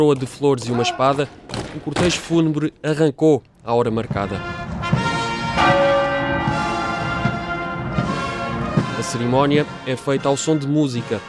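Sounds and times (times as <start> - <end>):
speech: 0.0 - 4.7, 9.1 - 11.2
chapel bells tolling: 4.0 - 10.5.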